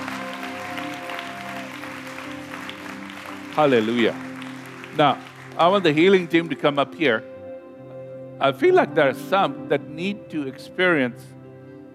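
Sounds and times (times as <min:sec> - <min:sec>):
audience applause: 0:00.0 - 0:06.8
speech: 0:03.6 - 0:04.3, 0:05.0 - 0:07.3, 0:08.4 - 0:11.4.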